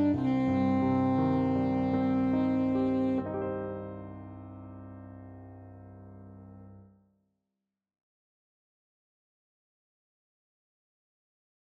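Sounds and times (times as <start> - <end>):
saxophone playing: 0.0 - 4.4.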